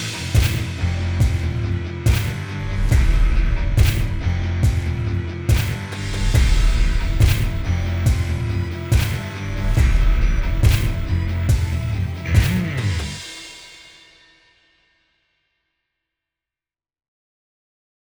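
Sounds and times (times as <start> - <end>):
industrial rock music: 0.0 - 13.9.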